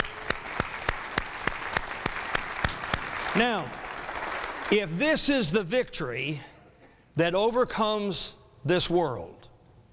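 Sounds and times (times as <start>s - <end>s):
audience clapping in unison: 0.0s - 5.0s
speech: 3.4s - 3.8s, 4.7s - 6.5s, 7.2s - 9.4s.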